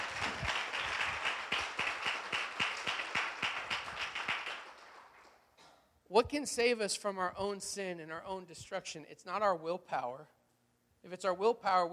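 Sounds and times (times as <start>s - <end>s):
audience clapping: 0.0s - 5.5s
speech: 6.1s - 10.4s, 11.0s - 11.9s.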